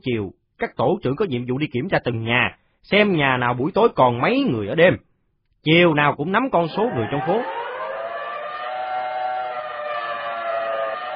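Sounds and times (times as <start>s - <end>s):
speech: 0.0s - 7.6s
air raid siren wailing up and down: 6.7s - 11.1s.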